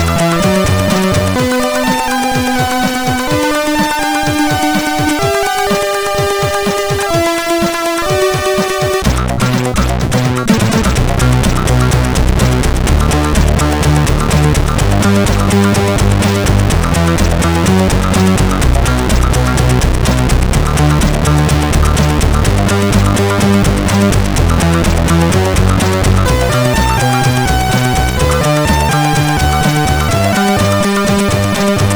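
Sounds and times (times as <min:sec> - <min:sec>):
SID CSG8580R5 intro music: 0:00.0 - 0:31.9.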